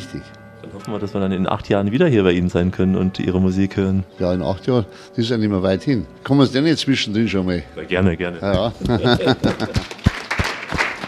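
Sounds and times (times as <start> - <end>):
speech: 0.1 - 10.0
laughter: 8.5 - 11.0
audience applause: 9.0 - 11.0.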